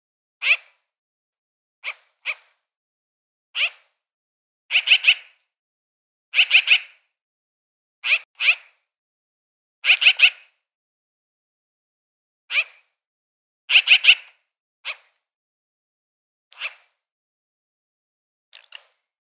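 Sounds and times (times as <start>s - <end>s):
magpie giving scratchy chirps: 0.4s - 0.7s, 3.6s - 3.8s, 4.7s - 5.4s, 6.4s - 7.0s, 8.0s - 8.7s, 9.8s - 10.4s, 13.7s - 14.3s.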